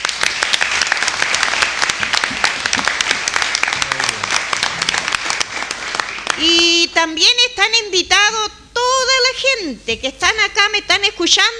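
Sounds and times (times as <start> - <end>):
applause: 0.0 - 6.9
speech: 6.4 - 8.6, 9.4 - 11.5.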